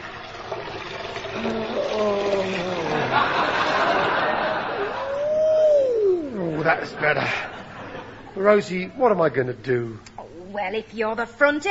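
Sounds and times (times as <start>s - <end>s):
cold water poured into a basin: 0.0s - 4.1s
speech: 0.6s - 3.6s, 6.6s - 7.6s, 8.4s - 11.6s
people talking and chuckling: 2.2s - 8.9s.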